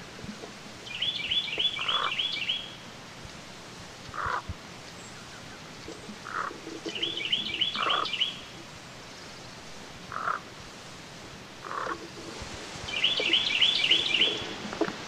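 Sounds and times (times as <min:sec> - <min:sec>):
Carolina wren song: 0:00.8 - 0:02.8, 0:04.2 - 0:10.4, 0:12.8 - 0:15.0.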